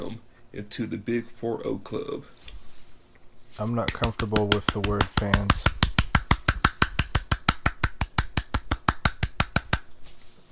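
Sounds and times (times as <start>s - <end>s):
speech: 0.0s - 2.6s, 3.6s - 5.8s
hand clapping: 3.6s - 10.0s.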